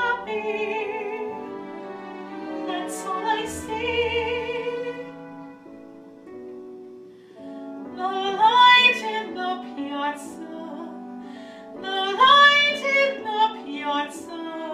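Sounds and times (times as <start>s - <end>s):
woman singing musical theatre: 0.0s - 1.6s, 2.6s - 5.2s, 7.9s - 14.7s.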